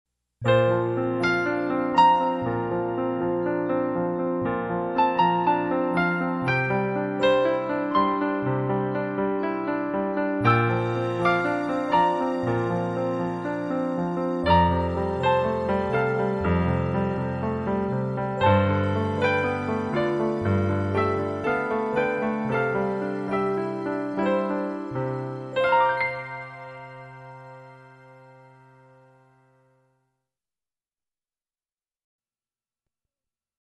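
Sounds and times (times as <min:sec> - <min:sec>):
piano: 0:00.4 - 0:30.2.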